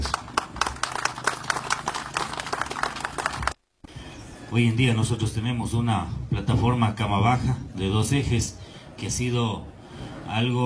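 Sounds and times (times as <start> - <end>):
audience applause: 0.0 - 3.6
speech: 4.5 - 9.7, 10.3 - 10.6.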